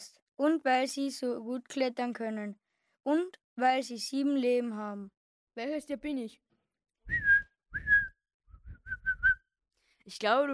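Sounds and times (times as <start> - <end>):
speech: 0.4 - 6.4, 10.1 - 10.5
person whistling like a bird: 7.1 - 9.4.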